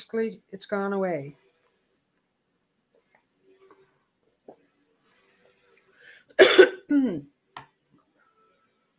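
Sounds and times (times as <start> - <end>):
speech: 0.0 - 1.4, 6.5 - 7.3
sharp raspy cough: 6.4 - 7.3.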